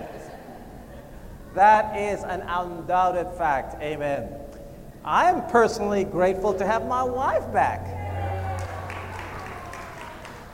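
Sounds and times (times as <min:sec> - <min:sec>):
speech: 0:01.6 - 0:04.4, 0:05.0 - 0:08.0
clapping: 0:08.5 - 0:10.5.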